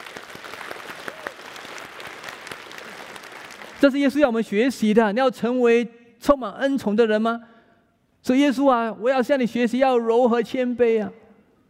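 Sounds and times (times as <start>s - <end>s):
audience applause: 0.0s - 3.8s
speech: 3.8s - 7.5s, 8.2s - 11.2s.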